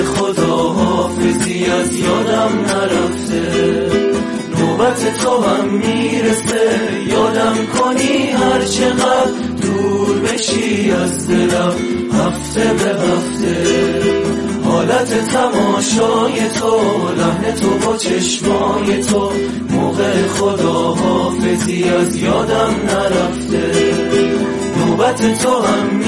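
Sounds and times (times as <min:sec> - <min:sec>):
Iranian group music performance with guitar: 0:00.0 - 0:26.0.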